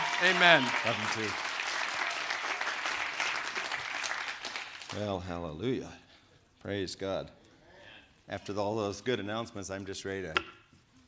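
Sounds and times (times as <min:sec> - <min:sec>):
crowd audience hand clapping: 0:00.0 - 0:05.2
speech: 0:00.2 - 0:01.5, 0:04.9 - 0:06.0, 0:06.6 - 0:07.4, 0:08.3 - 0:10.6.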